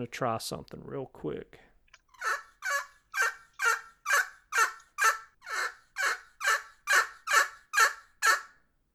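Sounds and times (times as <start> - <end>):
speech: 0.0 - 2.4
turkey gobbler yelps made on a game call: 2.2 - 8.6.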